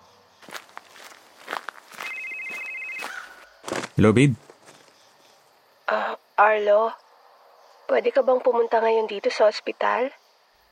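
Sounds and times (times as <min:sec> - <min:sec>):
soft footsteps: 0:00.4 - 0:05.2
mobile phone ringing with an incoming call at a Manila cemetery: 0:02.0 - 0:03.4
speech: 0:04.0 - 0:04.4, 0:06.5 - 0:07.0, 0:07.9 - 0:10.2.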